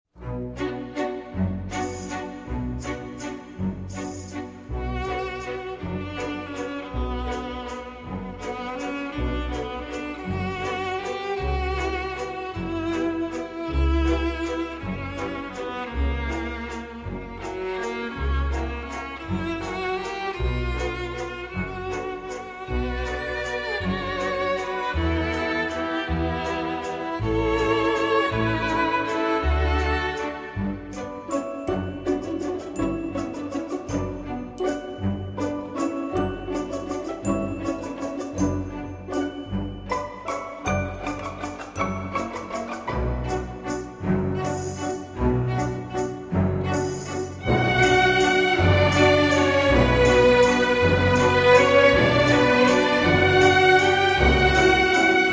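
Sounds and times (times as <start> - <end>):
waltz: 0.1 - 55.3.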